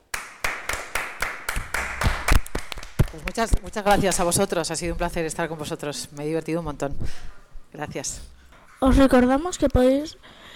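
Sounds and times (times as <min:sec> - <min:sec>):
applause of sharp hand claps: 0:00.0 - 0:04.4
speech: 0:03.1 - 0:10.5.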